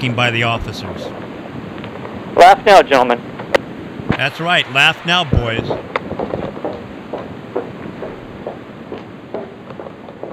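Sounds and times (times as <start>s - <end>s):
speech: 0.0s - 1.3s, 2.4s - 3.3s, 4.1s - 5.9s
footsteps walking to a car: 5.3s - 10.3s.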